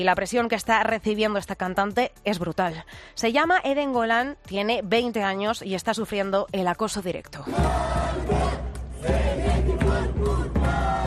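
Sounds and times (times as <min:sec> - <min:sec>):
speech: 0:00.0 - 0:09.5
crowd protesting and booing: 0:07.5 - 0:11.0.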